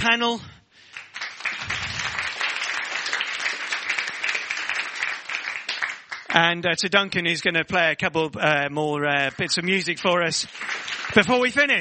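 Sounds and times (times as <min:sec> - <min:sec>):
speech: 0:00.0 - 0:00.6, 0:06.3 - 0:11.7
audience applause: 0:00.9 - 0:06.4, 0:09.2 - 0:11.7.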